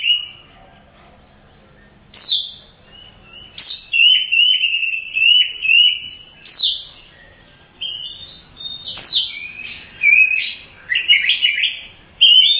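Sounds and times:
Oriental magpie-robin singing: 0.0s - 0.5s, 1.6s - 12.5s.

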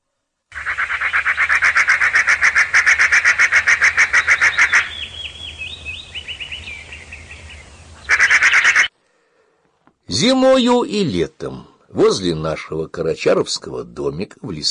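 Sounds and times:
magpies chattering by a small house in a forest: 0.5s - 8.9s
speech: 10.2s - 14.6s.

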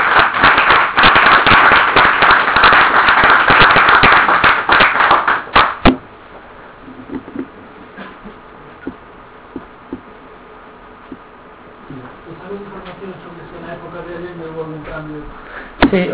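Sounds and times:
audience applause: 0.0s - 5.9s.

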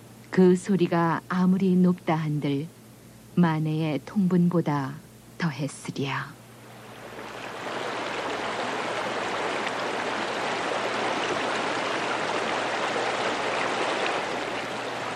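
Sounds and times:
speech: 0.3s - 2.8s, 3.4s - 6.4s
mountain stream water flowing: 6.6s - 15.1s.

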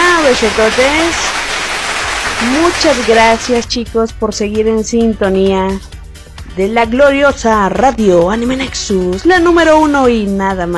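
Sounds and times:
applause: 0.0s - 3.6s
speech: 0.3s - 1.4s, 2.4s - 10.7s.

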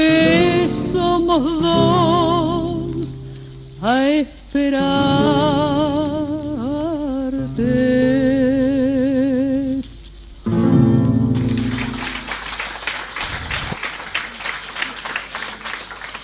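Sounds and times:
recorded tango song: 0.0s - 12.3s
very young audience applauding: 11.2s - 16.2s.

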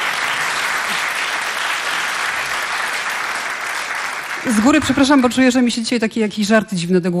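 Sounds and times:
loud studio audience applause: 0.0s - 5.8s
speech: 4.4s - 7.1s.

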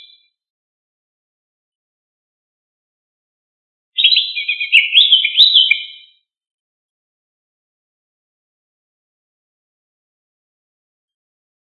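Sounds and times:
leafbird giving scratchy twittering phrases: 4.0s - 6.0s.

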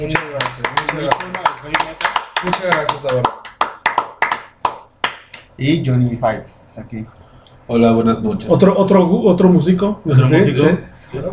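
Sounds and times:
speech: 0.0s - 3.4s, 5.6s - 11.3s
audience applause: 0.0s - 5.4s.

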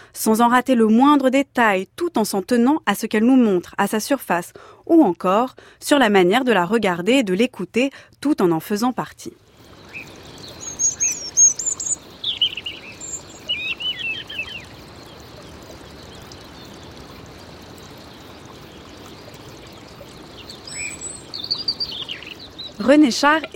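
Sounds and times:
speech: 0.2s - 9.5s, 22.9s - 23.5s
birds singing and chirping: 9.7s - 17.1s, 18.0s - 23.5s.

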